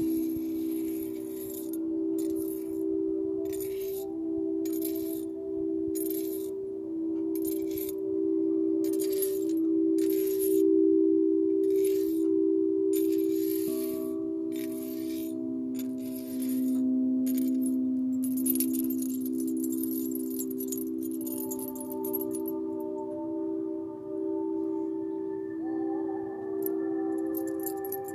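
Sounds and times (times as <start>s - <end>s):
Tibetan singing bowls ringing: 0.0s - 28.1s.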